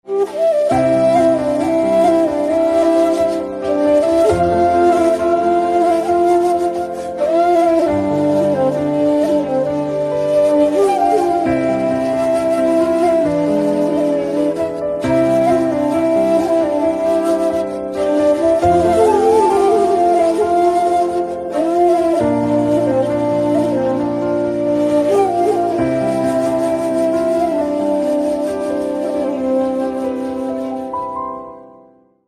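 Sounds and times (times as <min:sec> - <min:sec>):
flute instrumental ringtone: 0:00.1 - 0:31.9.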